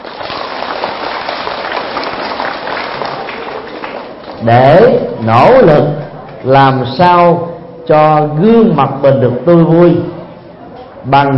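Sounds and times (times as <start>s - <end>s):
loud audience applause: 0.0s - 4.4s
speech: 4.4s - 10.1s, 11.0s - 11.3s.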